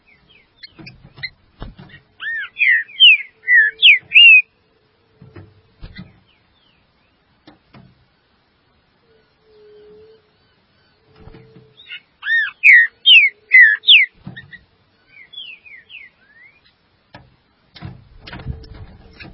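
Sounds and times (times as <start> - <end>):
Green-winged saltator song: 2.2 - 4.5, 11.8 - 14.2, 15.1 - 16.7.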